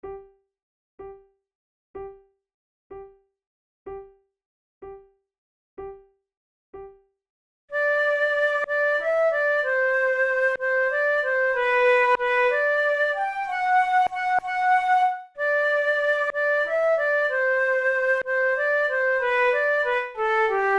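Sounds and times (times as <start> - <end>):
flute duet: 7.7 - 20.7.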